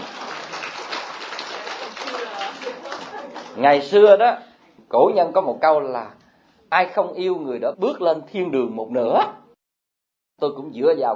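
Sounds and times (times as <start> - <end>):
audience clapping: 0.0 - 3.6
speech: 3.6 - 9.4, 10.4 - 11.1.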